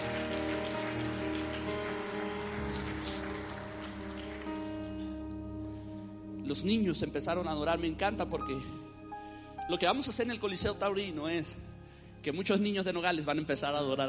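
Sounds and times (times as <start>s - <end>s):
audience applauding: 0.0s - 5.2s
speech: 6.5s - 8.9s, 9.7s - 14.0s.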